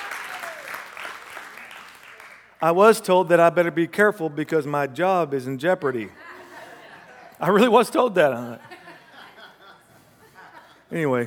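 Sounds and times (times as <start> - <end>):
audience applause: 0.0 - 2.6
speech: 2.6 - 6.2, 7.4 - 8.8, 10.9 - 11.2
laughter: 6.1 - 11.2.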